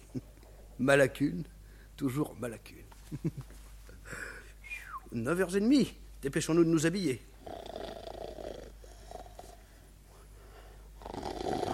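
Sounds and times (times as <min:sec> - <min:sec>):
speech: 0:00.2 - 0:04.3, 0:05.1 - 0:07.6
low rumbling snores: 0:07.4 - 0:09.6, 0:11.0 - 0:11.7.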